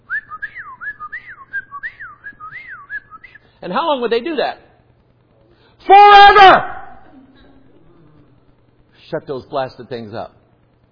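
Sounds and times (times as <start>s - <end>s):
person whistling a whippoorwill's call: 0.1s - 3.4s
speech: 3.6s - 4.6s, 5.9s - 6.7s, 9.1s - 10.4s.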